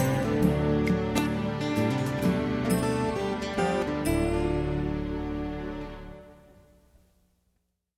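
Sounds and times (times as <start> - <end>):
warm country blues music: 0.0 - 6.0.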